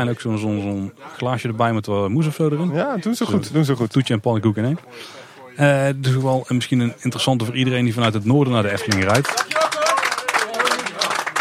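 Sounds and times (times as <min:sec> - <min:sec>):
speech: 0:00.0 - 0:09.6
crowd applauding: 0:08.0 - 0:11.3
voices cheering: 0:08.8 - 0:11.3.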